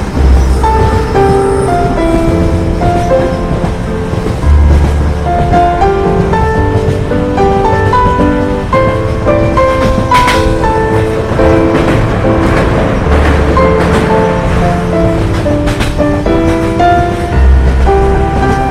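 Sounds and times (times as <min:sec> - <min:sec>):
deep rumble: 0:00.0 - 0:18.6
train chugging: 0:00.0 - 0:18.6
sharp clanks: 0:09.6 - 0:16.8.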